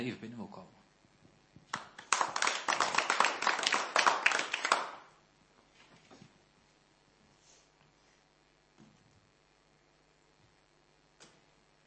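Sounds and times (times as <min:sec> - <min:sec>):
audience applause: 0:01.7 - 0:05.1.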